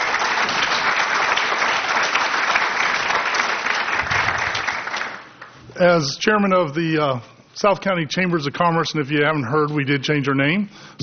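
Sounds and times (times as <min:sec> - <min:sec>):
audience applause for the candidates: 0:00.0 - 0:05.6
speech: 0:05.8 - 0:11.0.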